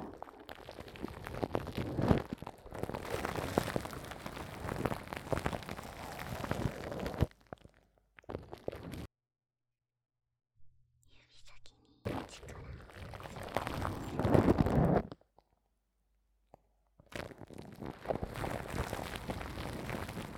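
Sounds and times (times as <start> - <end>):
ASMR oil wrapping sounds: 0.0 - 9.1, 12.1 - 15.2, 17.1 - 20.3.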